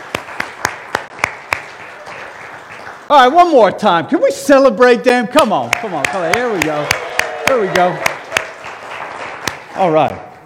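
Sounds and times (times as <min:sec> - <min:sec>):
church congregation clapping: 0:00.0 - 0:03.5, 0:05.6 - 0:10.4
speech: 0:03.1 - 0:08.1, 0:09.8 - 0:10.1.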